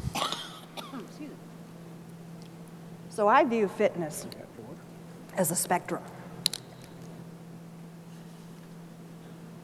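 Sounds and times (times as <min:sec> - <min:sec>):
cough: 0:00.1 - 0:01.3
speech: 0:03.2 - 0:04.4, 0:05.4 - 0:06.2.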